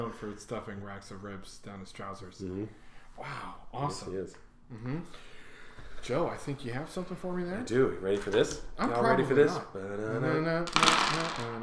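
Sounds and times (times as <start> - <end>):
speech: 0.1 - 5.3, 6.0 - 11.6
dice rattling: 10.6 - 11.6.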